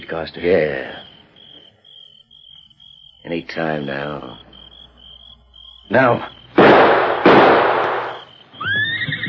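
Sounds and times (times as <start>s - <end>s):
speech: 0.1s - 1.0s, 3.3s - 4.4s, 5.9s - 6.4s
rifle shots: 6.6s - 8.3s
horse whinnying: 8.6s - 9.2s.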